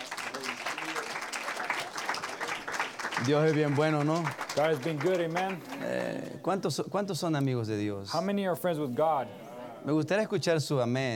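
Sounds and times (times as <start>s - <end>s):
church congregation clapping during a service: 0.0s - 6.4s
speech: 3.2s - 11.1s.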